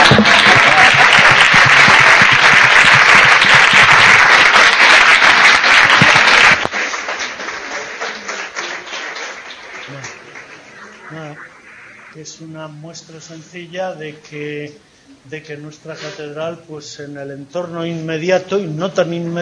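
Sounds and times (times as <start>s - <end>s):
audience applause: 0.0s - 12.2s
speech: 12.4s - 19.4s.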